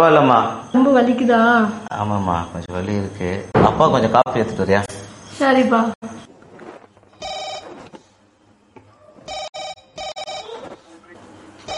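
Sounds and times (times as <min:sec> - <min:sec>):
speech: 0:00.0 - 0:06.3
telephone ringing with an incoming call as a trilling electronic bell: 0:07.2 - 0:08.0, 0:09.3 - 0:10.6.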